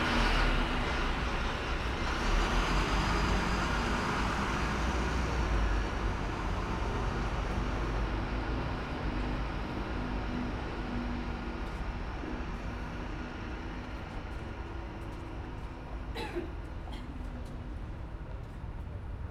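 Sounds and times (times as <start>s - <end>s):
long-distance bus departing at Újpest Városkapu: 0.0s - 19.2s.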